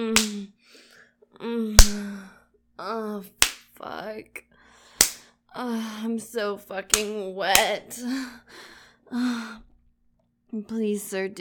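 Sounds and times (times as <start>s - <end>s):
hand slapping bare buttocks: 0.0s - 0.4s, 1.8s - 2.1s, 3.4s - 3.7s, 5.0s - 5.2s
speech: 5.6s - 9.7s, 10.5s - 11.4s.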